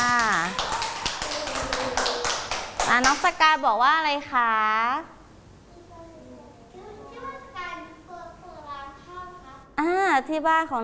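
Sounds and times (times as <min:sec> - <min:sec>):
crowd clapping hands: 0:00.0 - 0:03.3
speech: 0:03.0 - 0:05.2, 0:09.8 - 0:10.8.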